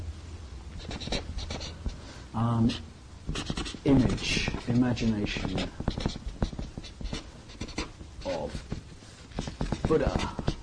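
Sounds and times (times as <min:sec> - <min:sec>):
low hiss: 0:00.0 - 0:10.6
pen scratching on paper jotting down a note: 0:00.8 - 0:02.0, 0:02.7 - 0:10.6
speech: 0:02.3 - 0:06.1, 0:09.9 - 0:10.4.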